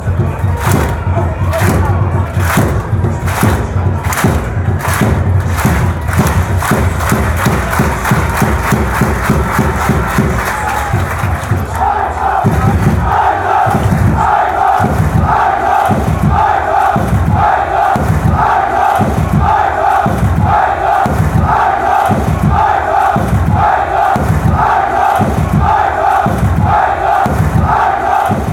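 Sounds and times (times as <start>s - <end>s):
drums: 0.0s - 28.5s
fans chanting: 0.0s - 28.5s.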